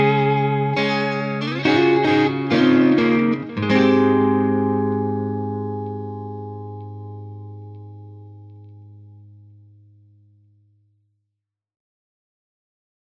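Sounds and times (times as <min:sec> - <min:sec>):
Stratocaster electric guitar through H55 30W amp: 0:00.0 - 0:10.3.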